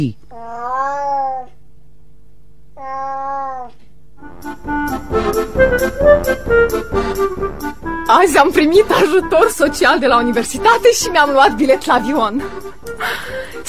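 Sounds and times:
speech: 0.0 - 0.2, 8.1 - 13.6
cat meowing: 0.3 - 1.6, 2.8 - 3.8
rhythmic music with clattering percussion: 4.2 - 13.6.

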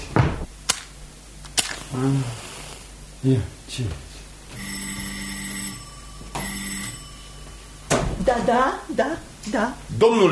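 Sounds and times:
match being struck: 0.7 - 2.9
speech: 1.9 - 2.5, 3.2 - 4.1, 8.3 - 10.3.

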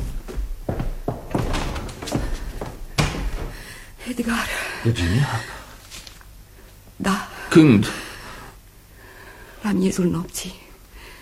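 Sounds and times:
door being opened with heavy thuds and wooden knocks: 0.0 - 3.9
speech: 4.1 - 5.6, 7.0 - 8.0, 9.7 - 10.6.

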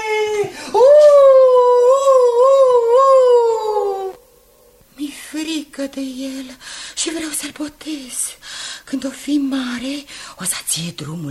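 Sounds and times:
young wolf cub howling: 0.0 - 4.2
speech: 5.8 - 11.3.

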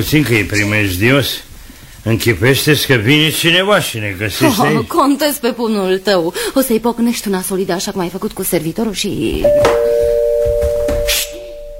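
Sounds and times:
speech: 0.0 - 10.1
doorbell ringing: 9.4 - 11.7.

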